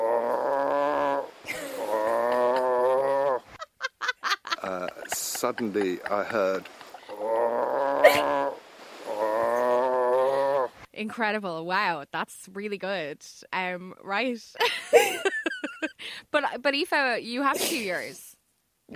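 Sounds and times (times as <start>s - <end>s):
man imitating a walrus: 0.0s - 3.4s, 4.6s - 10.7s
laughter: 1.5s - 7.2s, 14.6s - 16.0s
speech: 5.1s - 6.8s, 11.0s - 15.3s, 16.3s - 18.3s.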